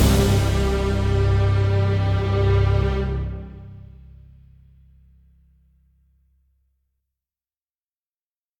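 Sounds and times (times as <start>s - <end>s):
percussion: 0.0s - 3.9s
strings: 0.0s - 4.6s.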